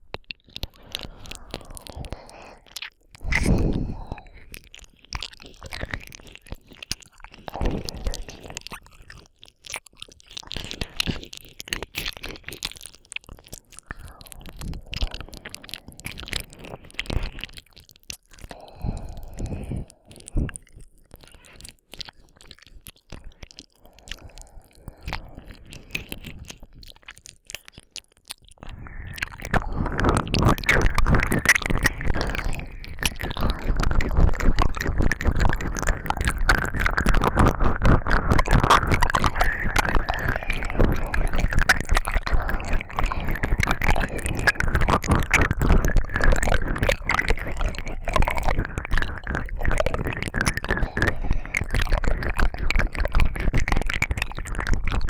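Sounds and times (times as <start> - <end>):
ear licking in both ears: 0.1 - 55.0.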